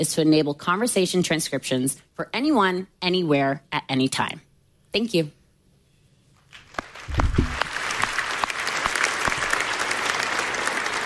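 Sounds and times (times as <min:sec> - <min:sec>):
speech: 0:00.0 - 0:05.4
lukewarm audience applause: 0:06.6 - 0:11.0.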